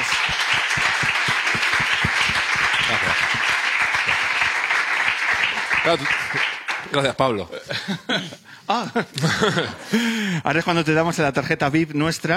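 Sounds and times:
laughter: 0.0s - 4.7s, 7.5s - 10.2s
audience applause: 0.0s - 7.0s
speech: 5.9s - 12.3s.

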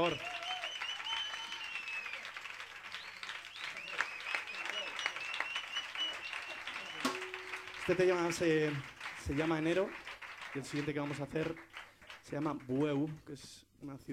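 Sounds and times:
speech: 0.0s - 0.3s, 7.9s - 11.7s, 12.3s - 14.1s
sustained audience applause for a choir: 0.0s - 12.7s.

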